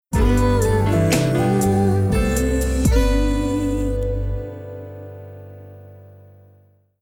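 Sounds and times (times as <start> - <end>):
singing voices for an advertisement: 0.1 - 4.9.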